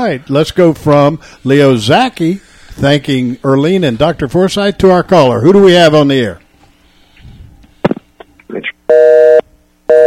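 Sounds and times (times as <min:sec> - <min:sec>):
speech: 0:00.0 - 0:06.4
telephone busy signal on a call-in line: 0:08.9 - 0:10.0.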